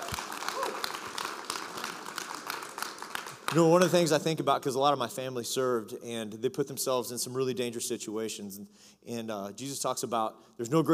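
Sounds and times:
audience applause: 0.0 - 4.2
speech: 3.5 - 10.9.

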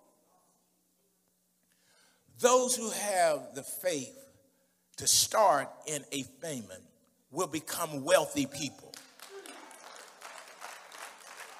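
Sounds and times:
speech: 2.4 - 4.2, 5.0 - 9.0
people clapping: 8.8 - 11.5.

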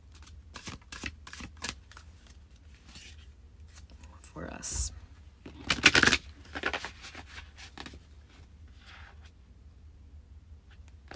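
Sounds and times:
Witch's Wisdom Oracle cards shuffling: 0.0 - 4.0, 5.4 - 9.2
speech: 4.6 - 5.0.

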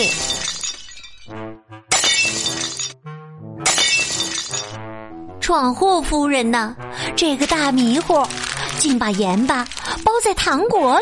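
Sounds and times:
plates shattering: 0.0 - 1.3, 1.9 - 3.0, 3.6 - 4.8
speech: 5.5 - 11.0.

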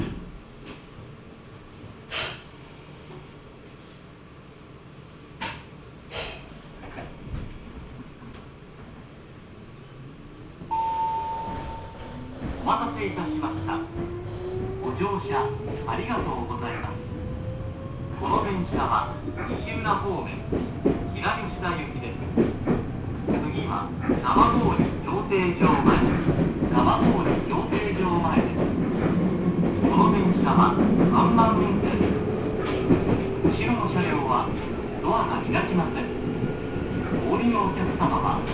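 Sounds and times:
Meitetsu Gamagori Line train pulling away: 9.5 - 38.5.

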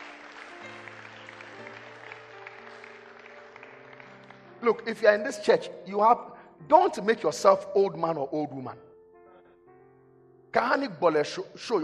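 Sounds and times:
audience clapping: 0.0 - 5.2
speech: 4.6 - 8.9, 10.5 - 11.8.

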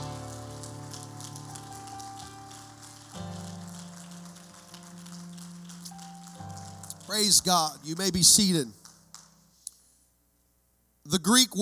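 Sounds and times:
audience clapping hands: 0.0 - 9.7
speech: 7.1 - 8.8, 11.3 - 11.5.

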